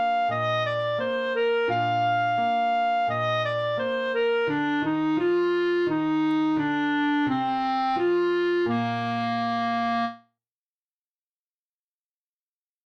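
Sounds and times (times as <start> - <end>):
clarinet solo: 0.0 - 10.2.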